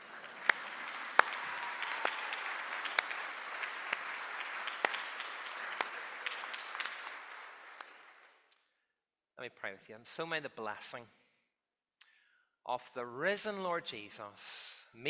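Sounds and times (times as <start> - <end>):
audience applause: 0.0 - 8.4
speech: 9.4 - 11.2, 12.7 - 15.0.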